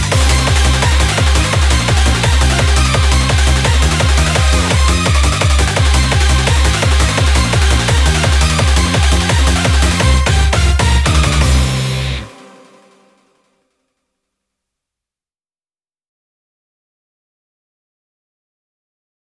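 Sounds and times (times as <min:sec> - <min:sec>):
instrumental music: 0:00.0 - 0:13.4.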